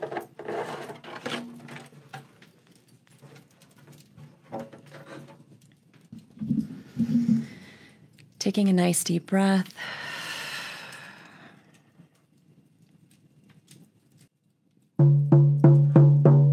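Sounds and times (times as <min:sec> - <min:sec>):
speech: 0:08.4 - 0:10.0
hand drumming: 0:15.0 - 0:16.5.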